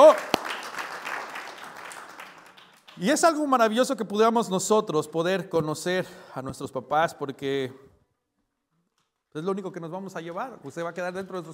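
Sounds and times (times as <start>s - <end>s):
audience applause: 0.0s - 3.3s
speech: 3.0s - 7.9s, 9.3s - 11.5s.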